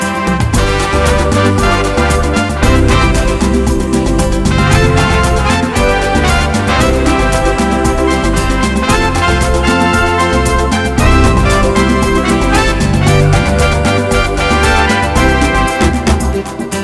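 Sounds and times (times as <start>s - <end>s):
smooth hot rumba music: 0.0s - 16.8s.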